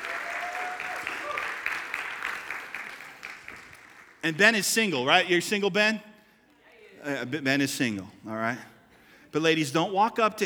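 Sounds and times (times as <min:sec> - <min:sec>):
audience applause: 0:00.0 - 0:04.2
speech: 0:04.2 - 0:06.1, 0:07.0 - 0:08.7, 0:09.3 - 0:10.4.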